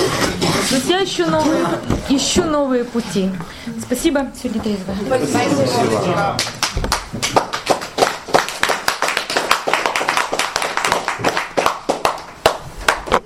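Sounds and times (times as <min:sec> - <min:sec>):
speech: 0:00.7 - 0:07.0
people applauding: 0:05.9 - 0:13.2.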